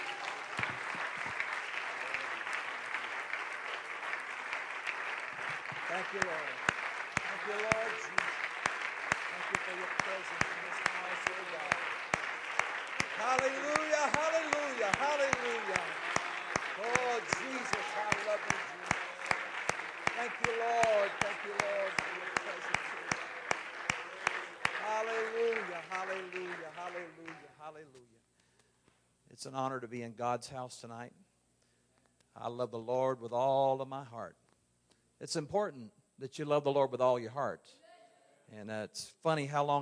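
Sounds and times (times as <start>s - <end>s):
audience clapping hands in praise: 0.0s - 27.7s
speech: 6.0s - 6.7s, 7.4s - 8.3s, 9.4s - 12.0s, 13.2s - 16.0s, 16.8s - 18.7s, 20.2s - 22.7s, 25.0s - 28.2s, 29.4s - 31.2s, 32.4s - 34.4s, 35.2s - 37.8s, 38.5s - 39.8s.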